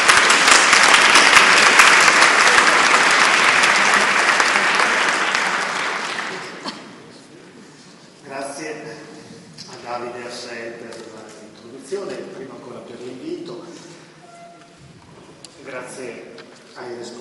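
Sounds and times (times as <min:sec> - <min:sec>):
audience clapping: 0:00.0 - 0:06.9.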